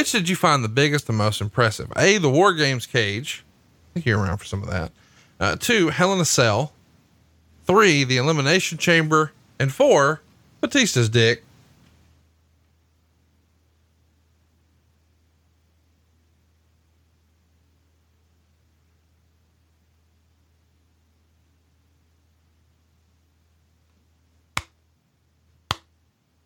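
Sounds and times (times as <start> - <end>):
speech: 0.0 - 6.8, 7.7 - 11.5
slow clap: 25.7 - 25.9.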